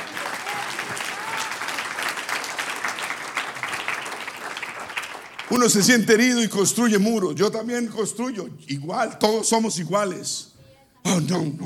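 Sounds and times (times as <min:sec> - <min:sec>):
audience applause: 0:00.0 - 0:06.0
speech: 0:05.5 - 0:10.5, 0:11.1 - 0:11.6.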